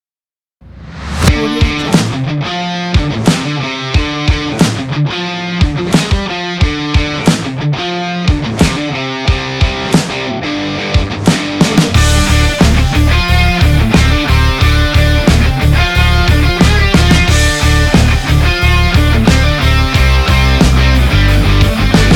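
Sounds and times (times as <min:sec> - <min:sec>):
sport rock drum kit: 0:00.7 - 0:22.1.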